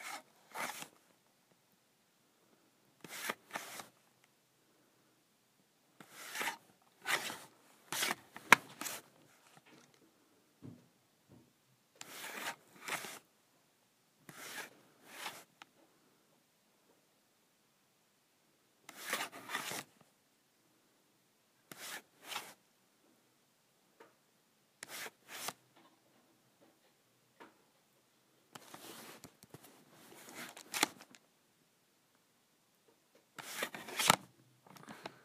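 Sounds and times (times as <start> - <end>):
calculator cover sliding on and off: 0.0 - 0.9, 3.0 - 4.0, 6.0 - 9.6, 12.0 - 13.2, 14.3 - 15.5, 18.9 - 19.9, 21.7 - 22.5, 24.8 - 25.6, 28.6 - 31.1, 33.4 - 34.3.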